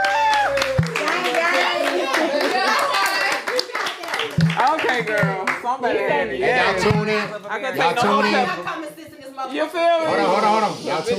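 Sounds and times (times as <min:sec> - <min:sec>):
people clapping: 0:00.0 - 0:05.7
speech: 0:05.0 - 0:11.1.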